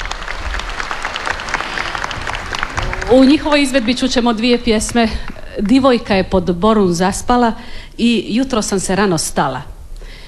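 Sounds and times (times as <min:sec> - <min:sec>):
audience applause for a women's klapa choir from Zadar: 0:00.0 - 0:05.8
speech: 0:03.1 - 0:09.7.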